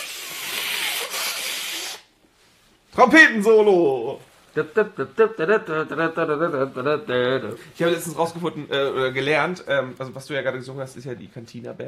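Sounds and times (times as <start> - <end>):
person blowing nose: 0.0 - 2.2
speech: 3.0 - 11.8.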